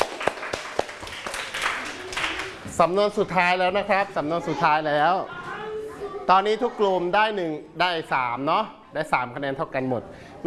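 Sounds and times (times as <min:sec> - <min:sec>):
group clapping for themselves during a team idiom game: 0:00.0 - 0:02.7
speech: 0:02.8 - 0:05.4, 0:06.3 - 0:10.4.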